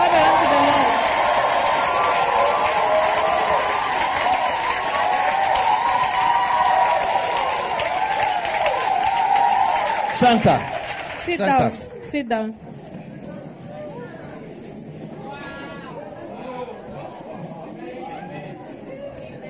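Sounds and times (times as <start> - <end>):
congregation clapping in church during an apostolic mission visit in Maxixe: 0.0 - 11.8
speech: 10.3 - 10.7, 11.3 - 12.7.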